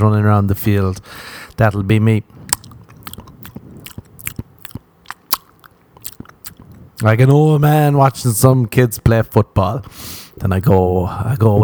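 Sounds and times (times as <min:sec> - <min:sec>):
speech: 0:00.0 - 0:02.4, 0:07.0 - 0:11.6
lip smacking from a dry mouth: 0:00.5 - 0:08.4, 0:09.8 - 0:10.5.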